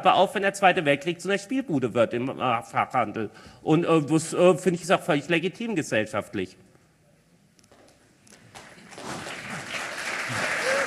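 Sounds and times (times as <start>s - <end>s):
speech: 0.0s - 6.6s
restrained audience applause: 8.6s - 10.8s.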